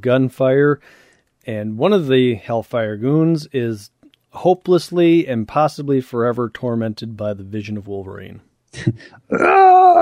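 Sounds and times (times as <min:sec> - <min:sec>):
speech: 0:00.0 - 0:10.0
anguished scream: 0:09.3 - 0:10.0.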